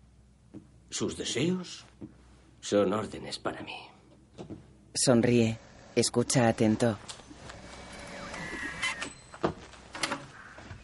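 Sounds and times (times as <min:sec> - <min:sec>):
speech: 0:00.9 - 0:07.2
door opening: 0:06.7 - 0:10.8.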